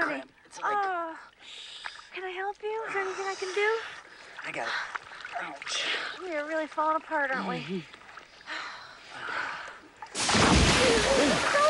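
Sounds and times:
speech: 2.5s - 8.0s
shark splashing in water: 10.2s - 11.6s.

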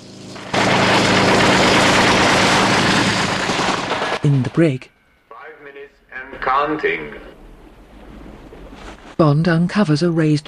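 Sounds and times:
helicopter roar: 0.0s - 5.1s
speech: 4.2s - 5.0s, 6.4s - 7.3s, 9.2s - 10.4s.

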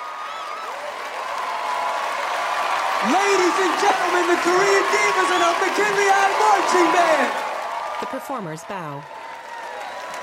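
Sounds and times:
faint whistles or cheers: 0.0s - 2.0s, 2.9s - 7.6s
large audience applauding: 0.0s - 10.2s
speech: 3.0s - 7.4s, 8.0s - 9.2s.

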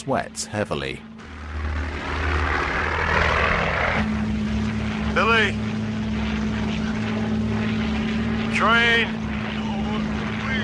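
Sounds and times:
speech: 0.0s - 1.7s, 5.2s - 5.7s, 8.6s - 9.2s
damaged propeller airplane droning in flight: 0.0s - 10.6s.

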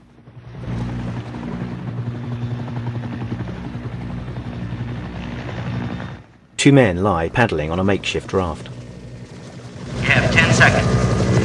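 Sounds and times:
helicopter rotor chopping over water at night: 0.0s - 11.4s
speech: 6.6s - 8.7s.

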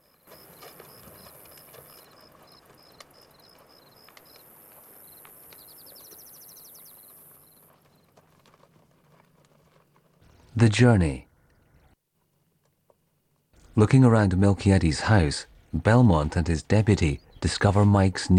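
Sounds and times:
crickets and insects chirping: 0.0s - 8.2s
horses' hooves clip-clopping as riders set off on horseback: 0.0s - 18.3s
speech: 10.6s - 11.3s, 13.8s - 18.3s.

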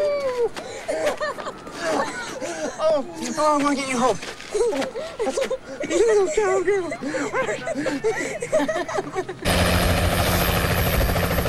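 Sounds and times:
laughter: 0.0s - 9.5s
speech: 3.0s - 10.0s
medical helicopter flying off: 9.4s - 11.4s
low hum: 9.5s - 11.4s.

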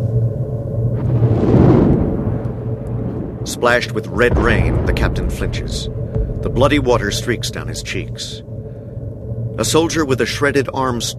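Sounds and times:
steady low hum: 0.0s - 11.1s
flamethrower fuel pack exploding during a wartime battle: 1.0s - 2.4s, 4.1s - 8.2s
speech: 3.6s - 8.5s, 9.6s - 11.1s.

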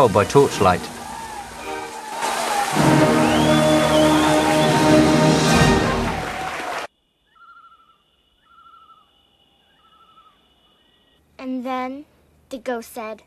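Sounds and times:
speech: 0.0s - 1.0s, 11.8s - 13.2s
soft music: 0.0s - 6.8s
crowd applauding: 0.0s - 6.9s.

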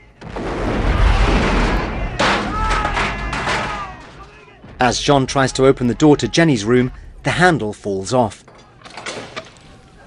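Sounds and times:
explosions of outbuildings at a villa: 0.0s - 7.5s
gun tower collapsing: 0.0s - 10.0s
speech: 4.8s - 8.5s.

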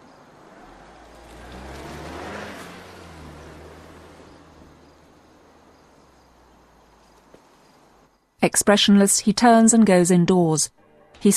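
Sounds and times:
car engine humming as it reverses out of a driveway and drives away: 0.0s - 8.1s
speech: 8.4s - 11.3s.

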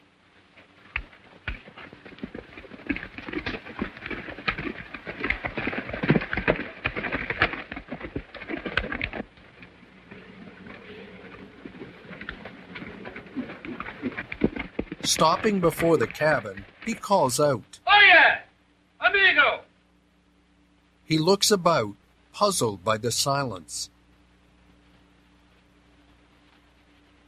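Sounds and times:
hooves of a horse and a led pony descending a bluff: 0.5s - 17.6s
speech: 15.1s - 18.4s, 21.1s - 24.0s.

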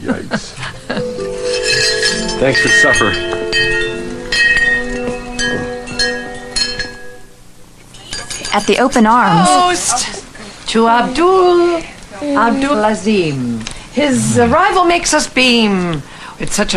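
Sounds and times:
wind chimes being bumped and jangling: 1.2s - 7.2s
speech: 2.4s - 3.8s, 8.5s - 16.7s.

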